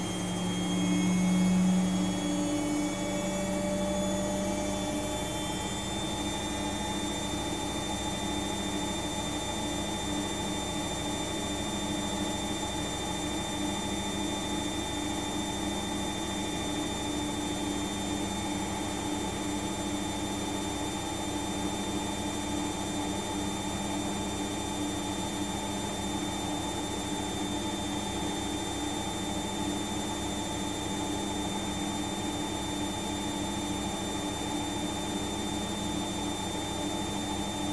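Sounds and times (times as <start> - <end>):
washing machine running: 0.0 - 37.7.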